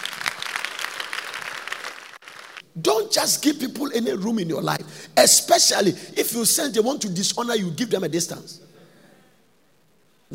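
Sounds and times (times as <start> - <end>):
audience clapping: 0.0 - 2.7
speech: 2.8 - 8.7.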